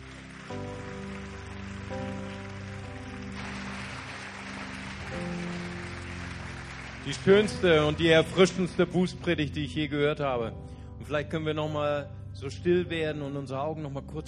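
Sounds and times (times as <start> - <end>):
audience applause: 0.0 - 8.7
speech: 7.1 - 14.2.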